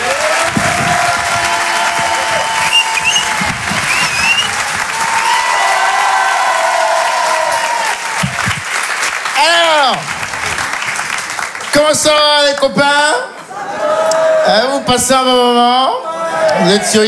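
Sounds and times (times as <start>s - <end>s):
audience applause: 0.0s - 12.7s
speech: 12.0s - 13.3s, 14.5s - 17.0s
laughter: 12.9s - 14.9s.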